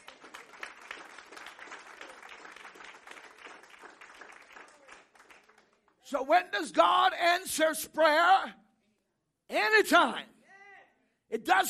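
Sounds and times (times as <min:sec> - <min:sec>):
audience applause: 0:00.0 - 0:05.9
speech: 0:06.1 - 0:08.6, 0:09.5 - 0:10.3, 0:11.3 - 0:11.6.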